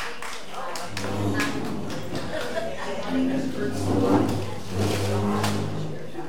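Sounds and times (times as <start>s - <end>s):
thin scattered applause: 0.0s - 3.5s
murmuring voices: 0.0s - 6.2s
laughter: 0.8s - 5.6s.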